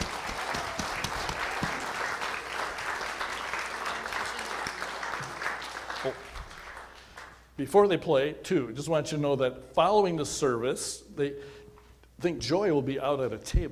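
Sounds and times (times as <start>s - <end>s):
church congregation in Milford, Iowa applauding a worship band: 0.0s - 7.5s
speech: 6.0s - 6.2s, 7.6s - 11.6s, 12.2s - 13.6s.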